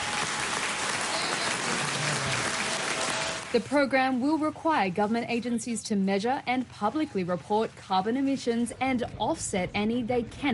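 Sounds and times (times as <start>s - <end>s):
applause in parliament: 0.0s - 3.6s
speech: 3.5s - 10.5s.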